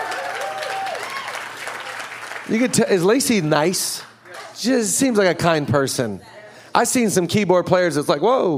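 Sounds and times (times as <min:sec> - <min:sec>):
audience applause for keyboard player: 0:00.0 - 0:03.2
speech: 0:02.5 - 0:08.5.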